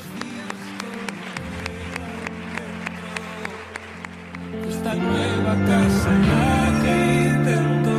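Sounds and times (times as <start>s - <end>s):
loud applause: 0.0s - 6.4s
speech: 4.9s - 7.9s.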